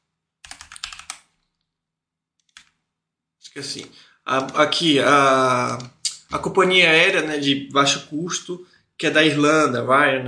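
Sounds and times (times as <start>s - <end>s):
computer keyboard typing: 0.4s - 1.6s, 2.4s - 2.8s
speech: 3.6s - 10.2s.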